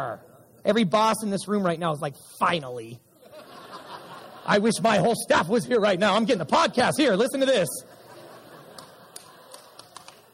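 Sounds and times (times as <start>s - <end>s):
speech: 0.0s - 3.0s, 4.5s - 7.9s
laughter: 3.2s - 5.1s, 7.7s - 10.1s
scattered faint audience claps: 8.7s - 10.3s.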